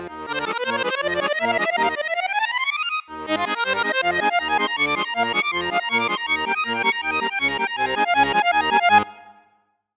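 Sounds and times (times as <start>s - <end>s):
Saltarelle accordion on piccolo flute register: 0.0s - 9.5s.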